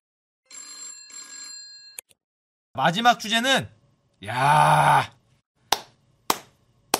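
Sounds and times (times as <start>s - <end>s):
speech: 2.8s - 5.2s
slow hand clapping: 5.7s - 6.9s.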